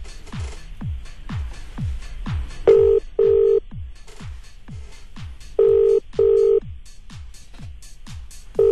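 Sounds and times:
constant rhythmic low thumping pulse: 0:00.0 - 0:08.7
phone line ringing with double bursts of tone: 0:02.7 - 0:03.6, 0:05.6 - 0:06.6.

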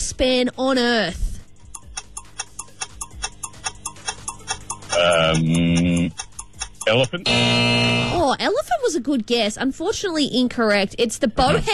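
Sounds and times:
speech: 0:00.2 - 0:01.3, 0:05.0 - 0:06.2, 0:06.9 - 0:11.7
five-second countdown timer ticking: 0:01.4 - 0:09.0
loud sustained buzzer tone: 0:03.4 - 0:06.2, 0:06.8 - 0:08.4.

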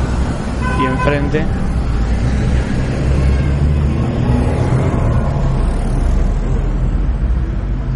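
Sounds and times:
cars passing on street: 0:00.0 - 0:07.9
speech: 0:00.8 - 0:01.7.

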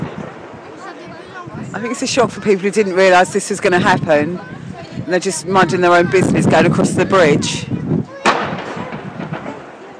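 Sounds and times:
speech: 0:01.7 - 0:07.8
firework bangs echoing off city buildings: 0:08.2 - 0:09.9.

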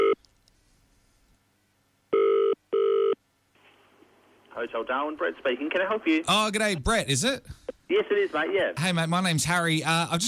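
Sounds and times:
telephone ringing: 0:02.1 - 0:03.2
speech: 0:04.6 - 0:10.2.

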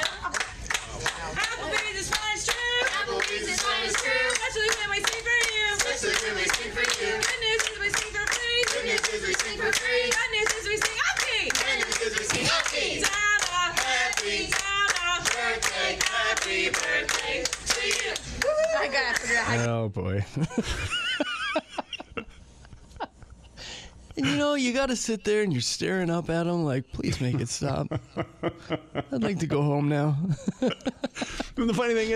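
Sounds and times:
people clapping during restaurant birthday song: 0:00.0 - 0:19.4
speech: 0:19.9 - 0:21.0, 0:24.6 - 0:31.0, 0:31.6 - 0:32.1
laughter: 0:20.2 - 0:23.3, 0:27.0 - 0:32.1.

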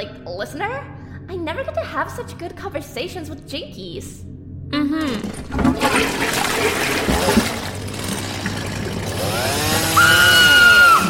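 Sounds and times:
speech: 0:00.2 - 0:07.5
toilet flushing: 0:05.2 - 0:11.0
high-pitched whistle: 0:10.0 - 0:11.0.

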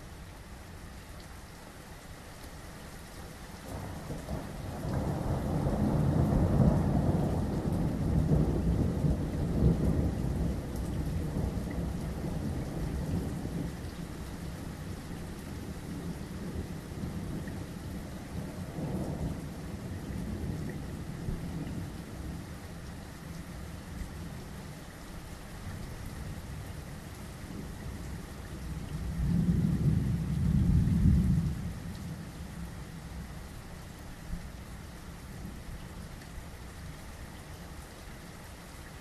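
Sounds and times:
thunderstorm in the early hours: 0:03.6 - 0:22.5, 0:27.4 - 0:32.8.

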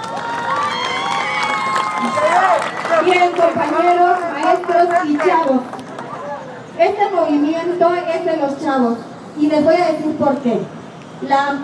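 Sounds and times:
audience shouts and whoops at a teachers' college rally: 0:00.0 - 0:03.0
audience of students and teachers clapping at a teachers' college rally: 0:00.0 - 0:06.2
speech: 0:03.1 - 0:05.8, 0:06.8 - 0:11.6.

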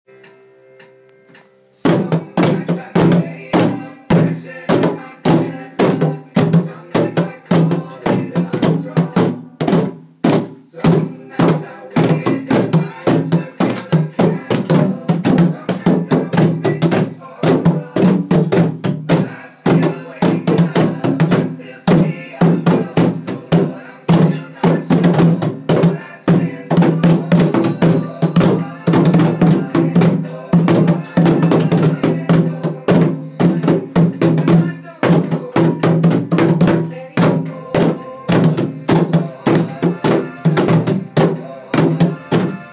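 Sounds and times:
rhythm composition: 0:00.8 - 0:42.7.

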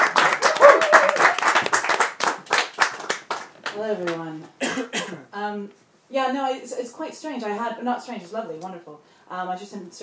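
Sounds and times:
audience applauding a speaker being introduced: 0:00.0 - 0:03.8
speech: 0:03.8 - 0:04.9, 0:05.5 - 0:10.0.

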